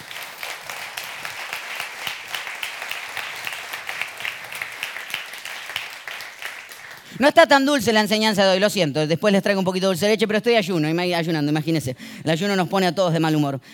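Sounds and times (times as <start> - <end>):
audience applause: 0.0 - 7.1
speech: 7.2 - 13.7.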